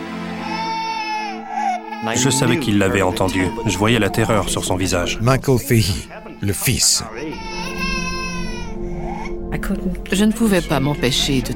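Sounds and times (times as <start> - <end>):
ghostly baby crying: 0.3 - 9.4, 10.2 - 11.5
speech: 2.0 - 8.0, 9.5 - 11.5.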